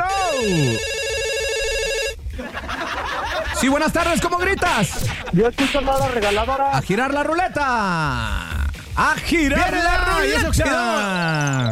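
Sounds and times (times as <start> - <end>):
telephone ringing for incoming call: 0.0 - 2.2
speech: 0.4 - 1.0, 3.6 - 8.4, 9.0 - 11.6
laughter: 2.3 - 9.0.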